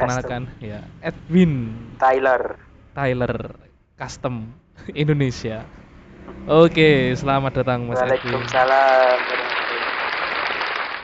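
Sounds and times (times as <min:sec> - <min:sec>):
speech: 0:00.0 - 0:09.7
crowd clapping: 0:08.0 - 0:11.0.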